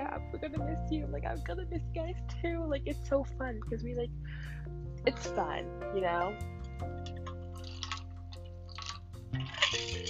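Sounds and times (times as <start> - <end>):
speech: 0.4 - 7.0, 9.7 - 10.0
person sipping a drink: 7.1 - 10.0.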